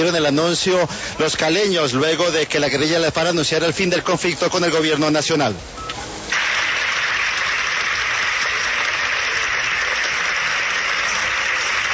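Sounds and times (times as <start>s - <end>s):
speech: 0.0s - 5.9s
theatre audience applauding: 6.3s - 11.9s.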